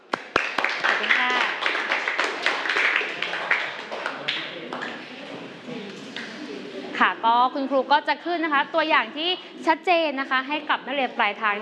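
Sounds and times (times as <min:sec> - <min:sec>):
group of students clapping in a classroom: 0:00.0 - 0:05.0
speech: 0:07.0 - 0:11.6.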